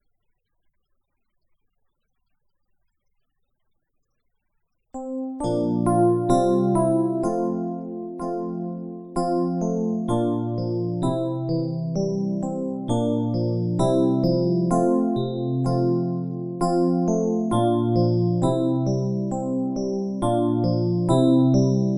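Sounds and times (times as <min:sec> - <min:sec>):
Christmas carol piano backing: 0:05.0 - 0:21.9.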